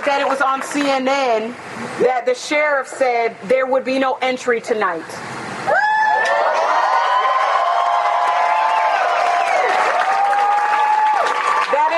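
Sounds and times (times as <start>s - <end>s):
speech: 0.1s - 5.8s
cheering and long whooping shouts: 5.7s - 11.9s
crowd applause: 6.2s - 11.9s.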